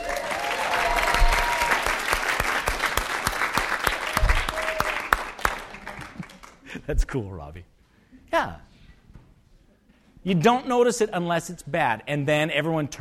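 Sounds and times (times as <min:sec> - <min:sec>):
audience applause: 0:00.0 - 0:06.8
speech: 0:06.9 - 0:08.7, 0:10.2 - 0:12.9.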